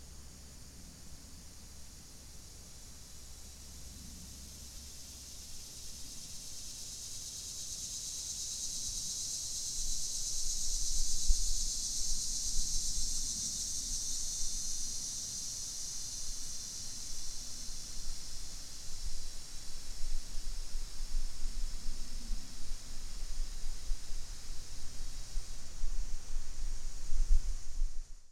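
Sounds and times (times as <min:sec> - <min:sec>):
Linne's cicada buzzing: 0:00.0 - 0:28.3.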